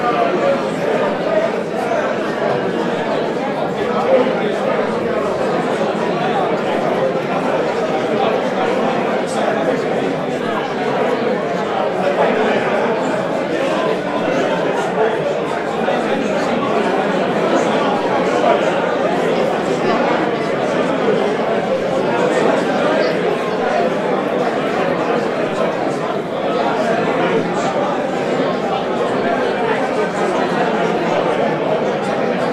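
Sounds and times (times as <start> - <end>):
large busy bar ambience: 0.0 - 32.5.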